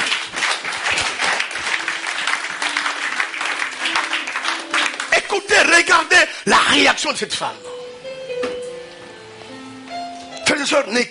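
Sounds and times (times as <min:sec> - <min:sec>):
church congregation applauding to acclaim the Lord: 0:00.0 - 0:06.4
speech: 0:05.4 - 0:07.7, 0:10.6 - 0:11.1.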